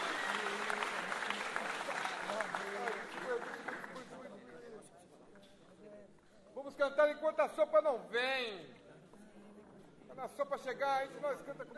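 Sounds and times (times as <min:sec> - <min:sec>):
audience applause for the composer: 0:00.0 - 0:04.1
speech: 0:06.8 - 0:08.8, 0:10.2 - 0:11.7.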